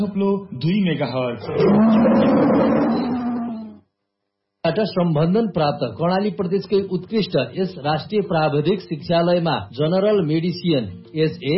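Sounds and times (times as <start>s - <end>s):
speech: 0.0s - 3.2s, 4.6s - 11.5s
tiger roar sound effect in a radio station jingle: 1.4s - 3.8s
voice-like tones: 1.4s - 3.8s.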